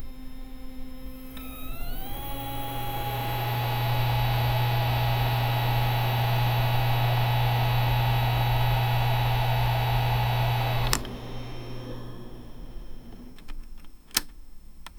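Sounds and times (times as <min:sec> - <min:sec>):
old computer running: 0:00.0 - 0:13.6.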